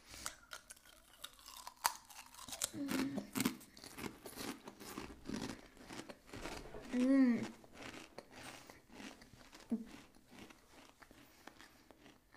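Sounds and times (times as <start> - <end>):
crunching and chewing ridged potato chips with 30% less fat: 0.0 - 12.3
speech: 6.9 - 7.6.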